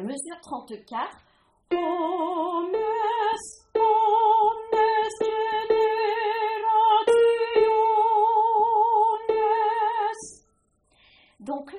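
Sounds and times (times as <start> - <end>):
tenor singing a canticle: 1.7 - 10.4.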